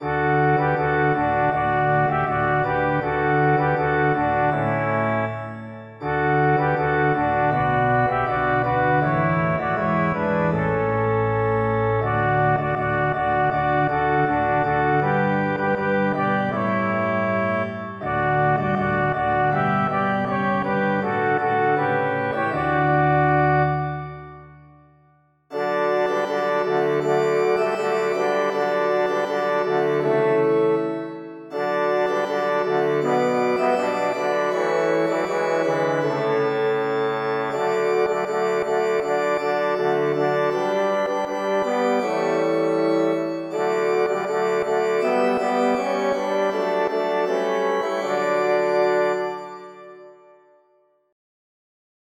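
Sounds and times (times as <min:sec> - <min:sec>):
multi-instrument music: 0:00.0 - 0:50.8.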